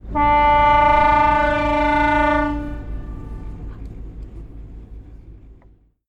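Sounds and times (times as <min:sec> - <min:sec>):
boat horn: 0:00.0 - 0:04.0.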